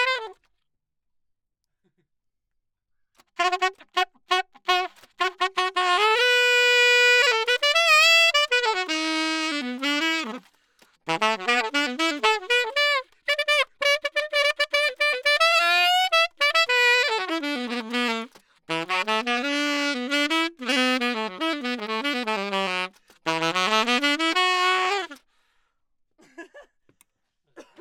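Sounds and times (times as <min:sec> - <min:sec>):
saxophone: 0:00.0 - 0:00.5, 0:03.2 - 0:25.3.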